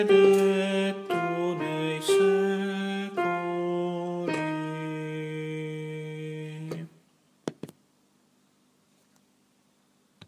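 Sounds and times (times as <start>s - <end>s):
sopranos singing: 0.0s - 7.0s.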